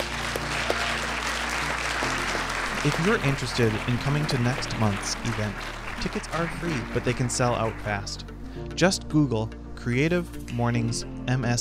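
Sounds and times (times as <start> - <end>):
crowd clapping: 0.0 - 8.2
speech: 2.8 - 11.5.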